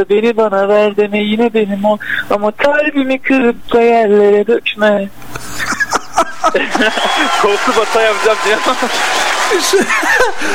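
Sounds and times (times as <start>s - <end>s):
speech: 0.0s - 5.4s, 6.4s - 10.5s
laughter: 5.4s - 8.0s, 9.4s - 10.5s
crowd applause sound effect: 6.3s - 10.5s
scattered cheers: 6.6s - 10.5s.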